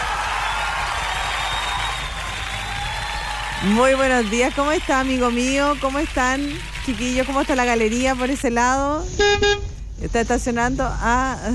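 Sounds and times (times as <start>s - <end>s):
sustained audience applause: 0.0s - 8.4s
speech: 3.6s - 11.5s.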